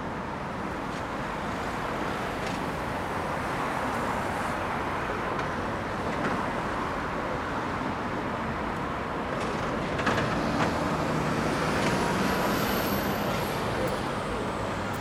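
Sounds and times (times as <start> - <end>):
urban soundscape in Swansea: 0.0 - 15.0.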